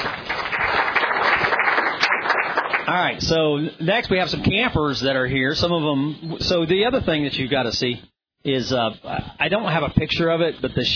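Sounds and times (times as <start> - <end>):
audience applause for a camp crew: 0.0 - 3.0
speech: 2.9 - 10.9.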